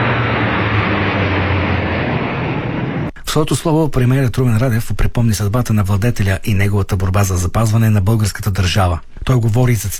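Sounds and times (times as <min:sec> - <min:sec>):
fighter jets roaring over the capital: 0:00.0 - 0:03.2
speech: 0:03.4 - 0:09.9.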